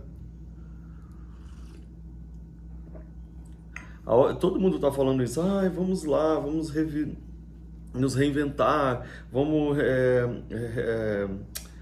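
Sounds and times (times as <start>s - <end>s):
steady low hum: 0.0s - 11.8s
slurping sip of coffee: 1.0s - 2.2s
speech: 4.1s - 7.3s, 7.9s - 11.6s.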